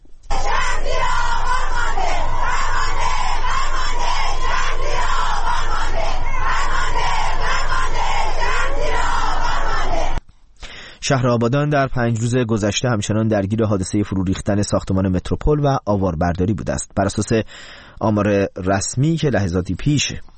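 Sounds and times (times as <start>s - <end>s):
large crowd of protesters chanting slogans: 0.3s - 10.2s
speech: 11.1s - 20.3s.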